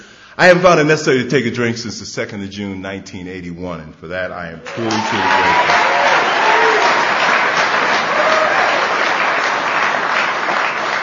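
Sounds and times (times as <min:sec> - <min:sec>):
speech: 0:00.4 - 0:05.9
audience applause: 0:04.7 - 0:11.0.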